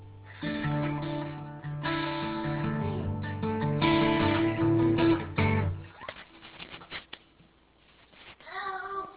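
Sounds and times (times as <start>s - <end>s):
slow sad guitar song: 0.0s - 5.9s.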